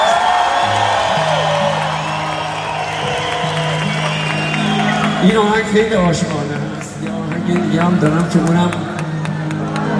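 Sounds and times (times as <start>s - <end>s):
people whooping: 0.0s - 6.0s
audience applause honouring a guitarist: 0.0s - 9.9s
speech: 5.2s - 6.4s, 7.5s - 8.8s.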